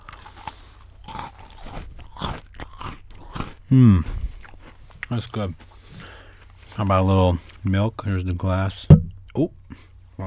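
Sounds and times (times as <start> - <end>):
crunchy bite of an Oreo cookie: 0.0 - 10.2
speech: 3.7 - 4.2, 5.1 - 5.6, 6.8 - 10.2.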